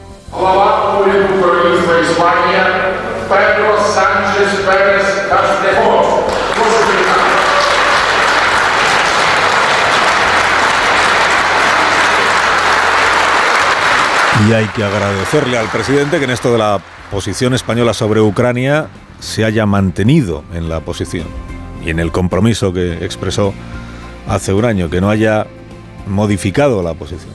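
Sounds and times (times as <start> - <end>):
speech: 0.4 - 6.3, 14.4 - 27.3
Ukrainian Parliament ovation for the President of the Government of Spain: 2.6 - 18.8.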